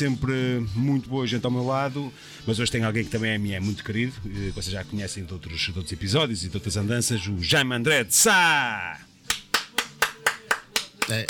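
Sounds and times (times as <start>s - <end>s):
speech: 0.0s - 9.1s, 11.1s - 11.2s
single person hand clapping: 9.2s - 11.2s.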